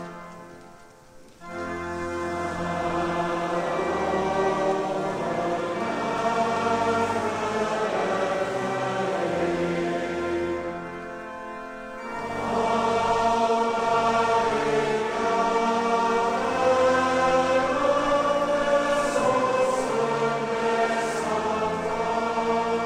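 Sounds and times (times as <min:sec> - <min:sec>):
people singing a psalm: 0:01.6 - 0:11.4, 0:12.0 - 0:22.8.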